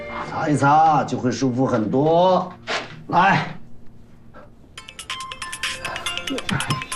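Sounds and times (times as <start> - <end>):
speech: 0.5 - 3.6
telephone ringtone of bright electronic tone pulses: 4.8 - 6.9.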